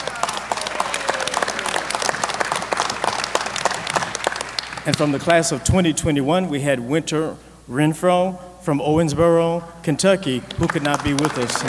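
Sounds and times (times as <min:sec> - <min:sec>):
audience applause: 0:00.0 - 0:05.3, 0:10.5 - 0:11.6
speech: 0:04.8 - 0:11.6.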